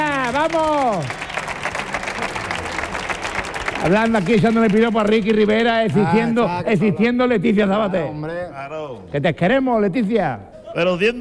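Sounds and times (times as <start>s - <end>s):
audience applause for a singer on a comedy show: 0.0s - 6.4s
speech: 0.3s - 1.2s, 3.8s - 11.1s.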